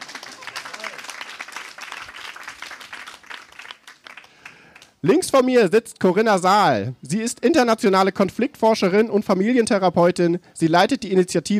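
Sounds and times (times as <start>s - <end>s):
audience applause: 0.0s - 5.0s
speech: 5.0s - 11.5s.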